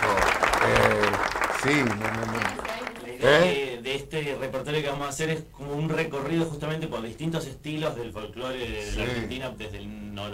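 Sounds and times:
applause: 0.0 - 3.5
speech: 1.6 - 10.3.

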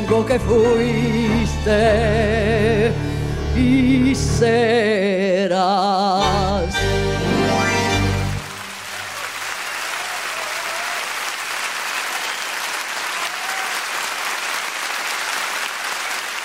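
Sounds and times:
speech: 0.2 - 7.3
audience applause at live tango concert at Teatro San Martín Buenos Aires: 8.3 - 16.4.

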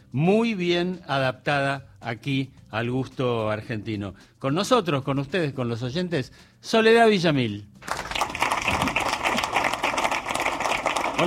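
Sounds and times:
speech: 0.1 - 8.0
studio audience applause: 7.8 - 11.2.

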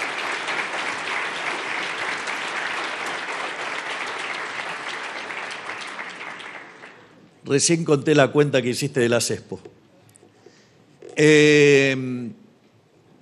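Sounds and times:
audience applause: 0.0 - 7.2
speech: 7.4 - 9.7, 11.2 - 12.4.

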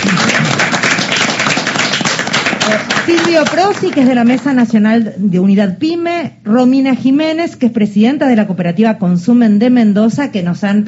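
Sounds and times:
studio applause: 0.0 - 4.6
speech: 2.7 - 10.8.

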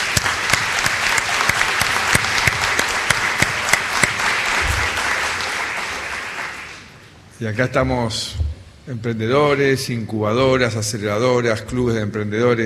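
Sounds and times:
audience applause: 0.0 - 7.0
speech: 7.4 - 12.6.

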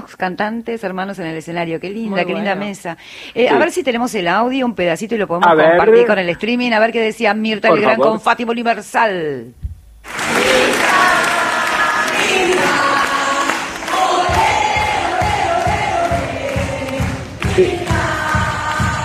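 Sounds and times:
speech: 0.1 - 10.8
rhythmic clapping in unison: 10.0 - 19.0
theater audience cheering and applause: 10.0 - 19.0.

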